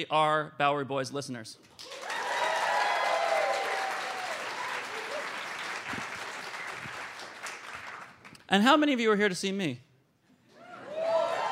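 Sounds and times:
speech: 0.0s - 2.1s, 8.5s - 9.9s
audience applause: 1.8s - 8.4s.

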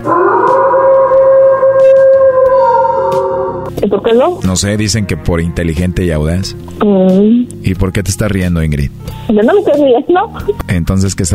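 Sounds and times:
voice imitating a wolf howl: 0.0s - 3.7s
speech: 3.9s - 11.3s.

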